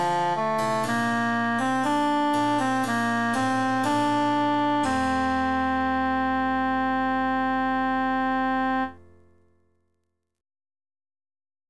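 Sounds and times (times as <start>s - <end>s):
emphasized alto voice: 0.0s - 9.2s.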